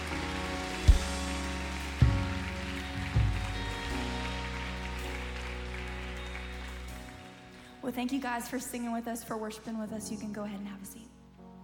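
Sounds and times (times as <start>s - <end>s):
audience applauding: 0.0s - 7.8s
speech: 7.9s - 11.2s.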